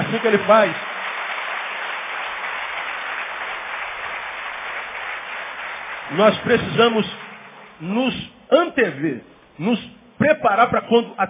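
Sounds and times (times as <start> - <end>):
audience applause: 0.0 - 8.1
speech: 0.2 - 0.9, 6.1 - 7.2, 7.8 - 11.2.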